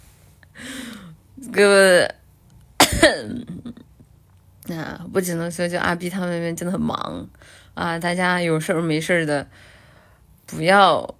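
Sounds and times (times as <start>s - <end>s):
speech: 1.4s - 2.2s, 4.7s - 9.7s, 10.5s - 11.1s
person coughing: 2.8s - 3.8s.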